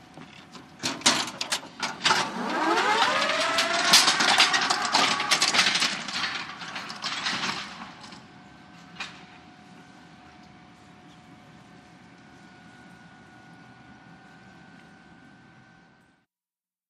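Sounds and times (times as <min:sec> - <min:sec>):
electric baggage car at a train station: 0:00.8 - 0:09.8.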